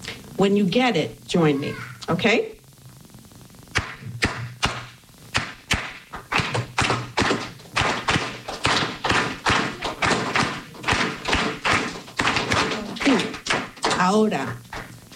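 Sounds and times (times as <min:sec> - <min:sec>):
speech: 0:00.4 - 0:02.6, 0:14.1 - 0:15.1
Cuban clave rhythm tapped out: 0:03.7 - 0:15.1.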